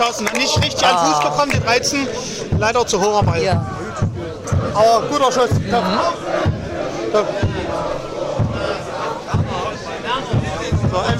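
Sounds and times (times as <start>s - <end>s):
speech: 0.0s - 8.1s
drum beats: 0.0s - 11.1s
football fans singing and chanting: 0.0s - 11.1s.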